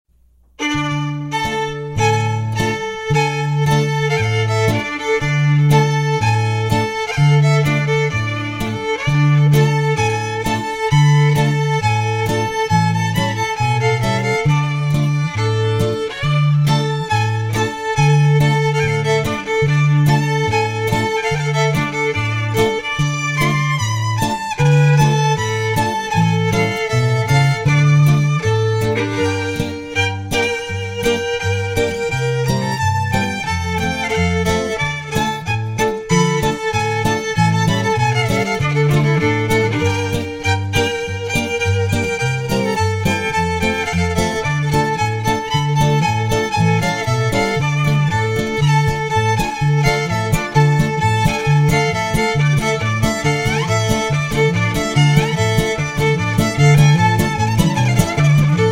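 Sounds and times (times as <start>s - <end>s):
instrumental Ukrainian folk medley: 0.4s - 58.7s.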